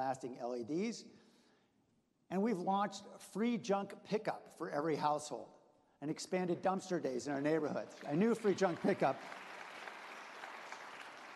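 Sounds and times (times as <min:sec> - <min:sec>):
speech: 0:00.0 - 0:01.2, 0:02.3 - 0:09.4
audience applause: 0:07.8 - 0:11.3.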